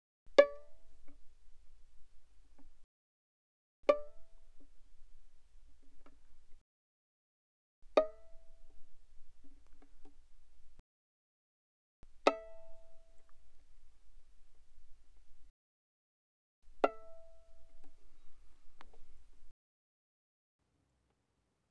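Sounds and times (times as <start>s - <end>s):
violin pizzicato mezzo-forte on the G string: 0.3s - 2.8s, 3.9s - 6.6s, 7.8s - 10.8s, 12.0s - 15.5s, 16.7s - 19.5s.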